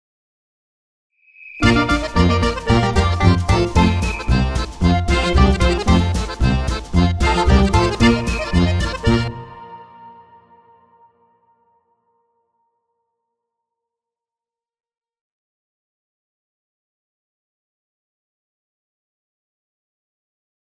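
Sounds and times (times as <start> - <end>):
Swiss folk heritage music: 1.6 - 10.6.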